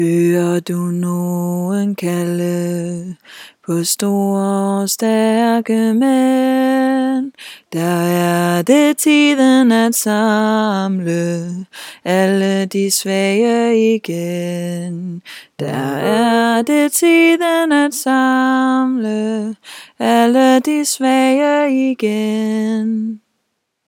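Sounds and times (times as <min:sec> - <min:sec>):
tenor singing: 0:00.0 - 0:23.2.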